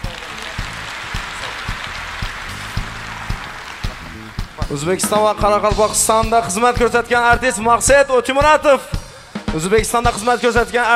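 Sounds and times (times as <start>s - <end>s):
applause for honoured performers at a stage event in Uzbekistan: 0.0s - 5.4s
speech: 4.7s - 10.9s.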